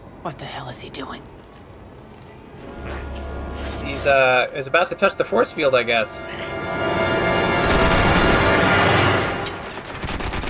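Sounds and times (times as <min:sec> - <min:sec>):
speech: 0:00.2 - 0:01.4, 0:03.8 - 0:07.1
rapid video game gunfire at a robot: 0:07.6 - 0:08.6, 0:09.8 - 0:10.4.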